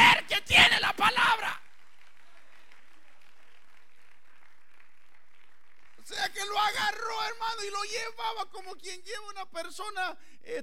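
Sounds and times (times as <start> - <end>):
audience applauding: 0.8 - 7.6
speech: 7.6 - 10.6.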